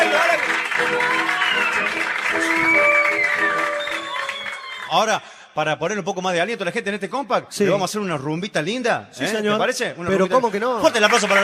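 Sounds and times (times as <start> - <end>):
audience applause: 0.0 - 5.1, 10.8 - 11.4
crowd cheering, whistling and raised voices: 0.0 - 5.1
speech: 4.9 - 11.4.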